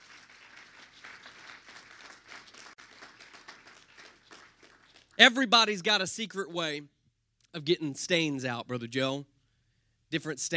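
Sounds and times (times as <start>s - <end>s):
audience clapping hands: 0.0s - 5.8s
speech: 5.2s - 7.0s, 7.6s - 9.3s, 10.1s - 10.5s.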